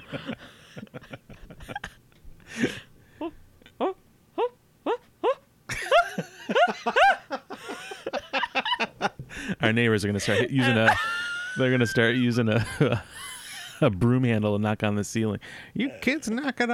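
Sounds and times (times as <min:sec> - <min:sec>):
laughter: 0:00.0 - 0:02.0, 0:05.7 - 0:13.8
speech: 0:00.1 - 0:01.2, 0:09.7 - 0:13.2, 0:13.8 - 0:16.7
person imitating an excited monkey: 0:03.2 - 0:05.5.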